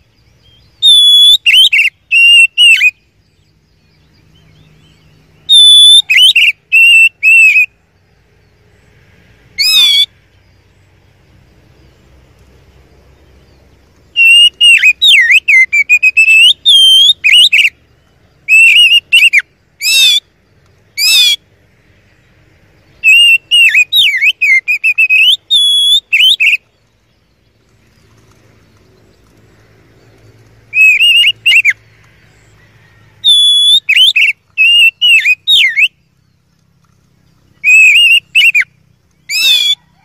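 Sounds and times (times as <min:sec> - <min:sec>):
Oriental magpie-robin whistling song: 0:00.0 - 0:07.8, 0:09.6 - 0:10.2, 0:13.5 - 0:20.3, 0:20.9 - 0:21.4, 0:22.8 - 0:27.4, 0:30.0 - 0:40.0.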